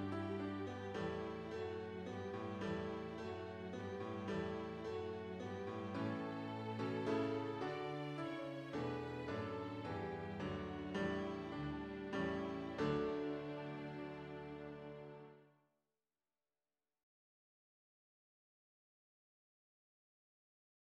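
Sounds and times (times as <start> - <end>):
strings playing a French folk song: 0.0 - 15.4.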